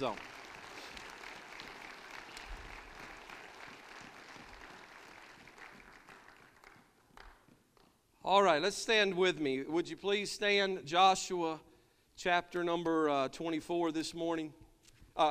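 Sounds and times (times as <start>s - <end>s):
speech: 0.0s - 0.3s, 8.2s - 14.6s, 15.2s - 15.3s
audience clapping hands: 0.0s - 8.0s.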